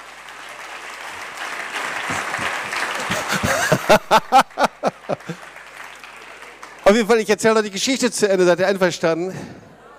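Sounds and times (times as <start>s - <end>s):
audience applause: 0.0s - 7.7s
laughter: 2.0s - 5.4s
speech: 3.3s - 4.5s, 6.9s - 9.6s.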